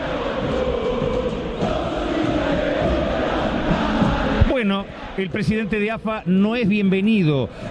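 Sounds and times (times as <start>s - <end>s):
football supporters singing in their stadium: 0.0s - 6.1s
speech: 4.8s - 7.6s.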